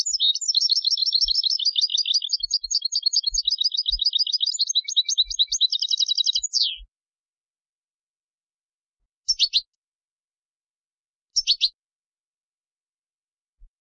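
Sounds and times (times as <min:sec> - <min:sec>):
Carduelis carduelis European goldfinch dry rattling trills: 0:00.0 - 0:06.8.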